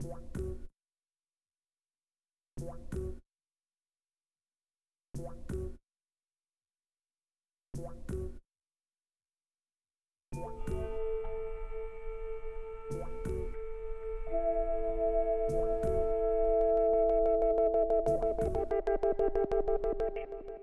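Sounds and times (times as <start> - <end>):
melody: 10.6 - 20.6.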